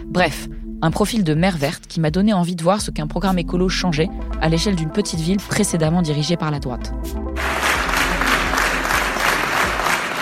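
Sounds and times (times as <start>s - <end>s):
speech: 0.1s - 7.2s
crowd applause: 7.4s - 10.1s.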